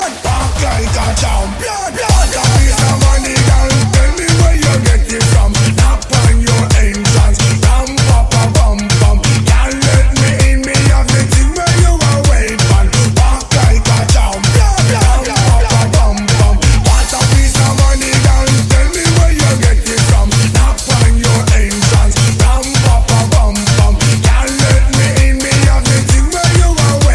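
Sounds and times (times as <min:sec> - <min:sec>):
disco music: 0:00.0 - 0:27.1.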